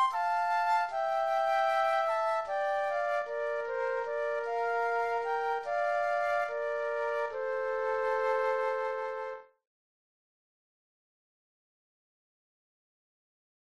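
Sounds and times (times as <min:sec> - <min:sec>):
flute duet: 0:00.0 - 0:09.6.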